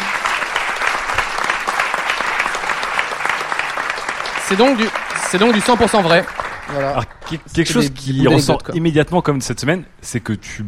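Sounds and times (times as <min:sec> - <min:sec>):
crowd applauding: 0:00.0 - 0:08.2
speech: 0:04.5 - 0:10.6.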